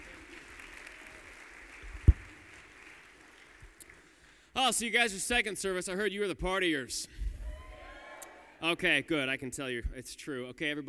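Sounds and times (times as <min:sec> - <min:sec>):
round of applause: 0:00.0 - 0:04.4
speech: 0:04.6 - 0:07.2, 0:08.6 - 0:10.8.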